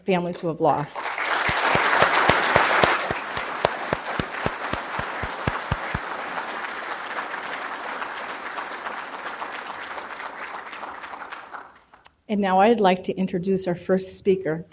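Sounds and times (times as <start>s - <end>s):
speech: 0.0s - 1.3s, 12.3s - 14.7s
audience applause: 1.0s - 12.0s.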